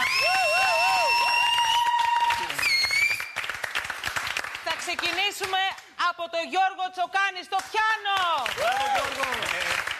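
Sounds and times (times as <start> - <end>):
audience applause for the orchestra: 0.0 - 5.2, 8.4 - 9.9
speech: 5.3 - 9.9.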